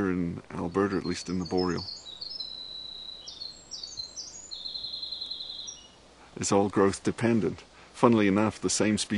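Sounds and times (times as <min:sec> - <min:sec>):
speech: 0:00.0 - 0:02.0, 0:06.4 - 0:09.1
winter wren singing: 0:00.0 - 0:07.0.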